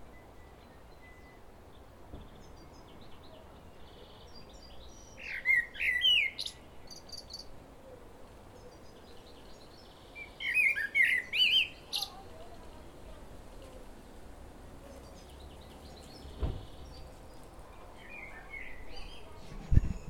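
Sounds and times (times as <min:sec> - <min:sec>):
common blackbird Turdus merula song: 0:00.0 - 0:12.8, 0:14.8 - 0:20.0.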